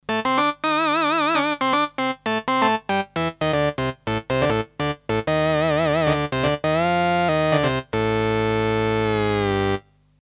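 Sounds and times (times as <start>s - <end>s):
Dunlop MXR M222 talkbox clean guitar lead: 0.1s - 9.0s.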